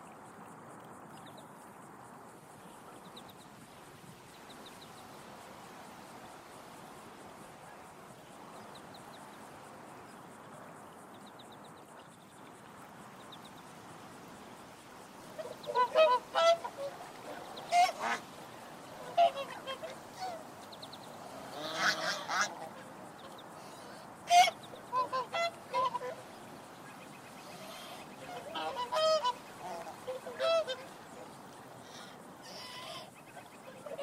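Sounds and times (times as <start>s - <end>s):
swans calling: 15.3s - 20.8s, 21.4s - 34.0s.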